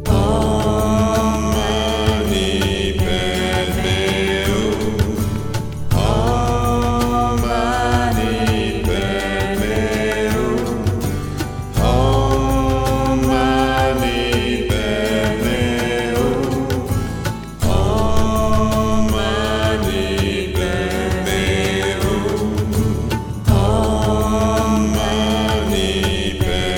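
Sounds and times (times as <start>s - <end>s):
mantra chanting: 0.1s - 11.2s, 11.8s - 26.7s.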